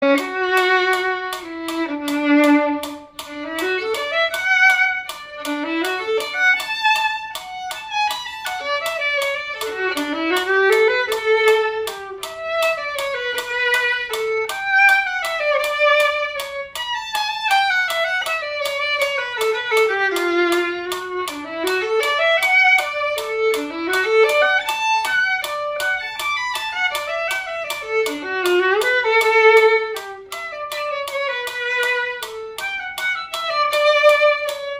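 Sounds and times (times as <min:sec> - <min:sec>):
violin: 0:00.0 - 0:34.7.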